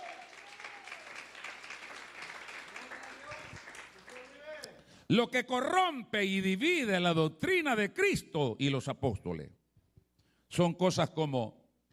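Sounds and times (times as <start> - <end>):
crowd applause: 0.0 - 4.6
speech: 5.1 - 9.6, 10.6 - 11.6.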